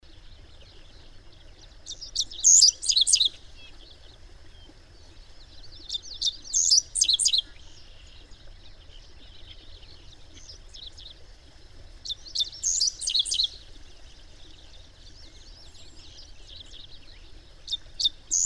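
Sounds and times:
bird twittering in quick chirps: 1.9s - 3.3s, 5.9s - 7.5s, 12.4s - 13.6s, 17.7s - 18.4s.

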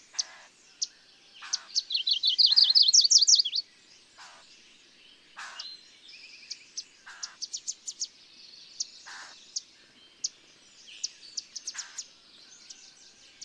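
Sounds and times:
bird singing trilled phrase: 1.4s - 3.6s.

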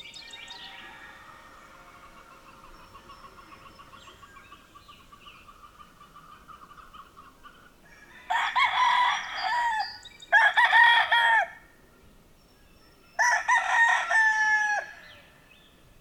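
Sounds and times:
rooster crowing: 0.2s - 2.5s, 7.9s - 11.6s, 13.2s - 15.2s.

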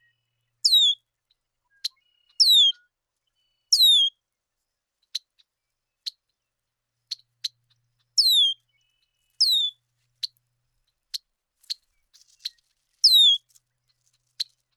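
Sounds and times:
bird whistling down-slurred notes: 0.6s - 1.0s, 1.7s - 2.9s, 3.7s - 4.1s, 8.2s - 8.6s, 9.4s - 9.8s, 13.0s - 13.4s.

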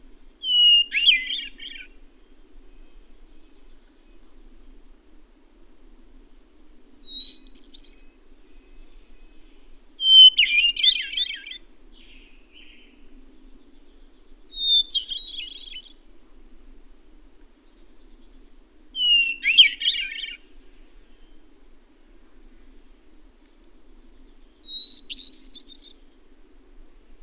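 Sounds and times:
bird song with high whistle and twittering warble: 0.3s - 4.8s, 7.0s - 16.1s, 17.5s - 21.5s, 22.6s - 26.3s.

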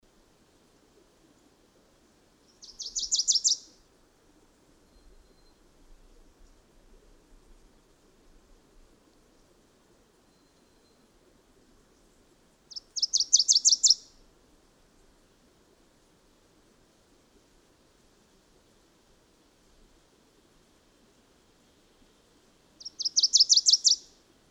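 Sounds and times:
bird song of high sweet chirped notes: 2.5s - 3.7s, 12.7s - 14.1s, 22.8s - 24.1s.

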